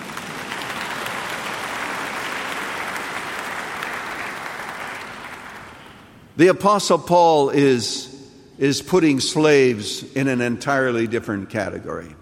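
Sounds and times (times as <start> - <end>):
audience clapping: 0.0 - 6.2
speech: 6.4 - 12.2.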